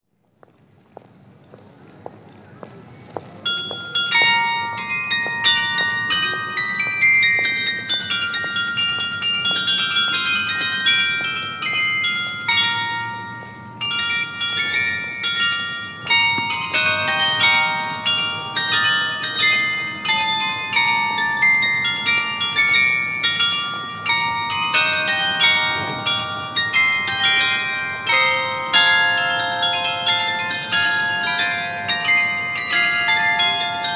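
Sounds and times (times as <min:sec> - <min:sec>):
carillon bells: 0:03.4 - 0:33.9.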